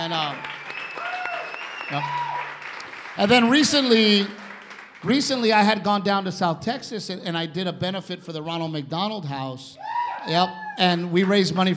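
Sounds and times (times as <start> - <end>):
speech: 0.0 - 0.6, 1.9 - 2.3, 3.2 - 4.4, 5.0 - 11.7
audience applause: 0.0 - 5.4.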